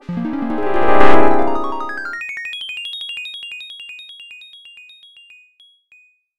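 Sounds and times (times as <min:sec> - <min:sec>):
arcade game over sound: 0:00.0 - 0:02.2.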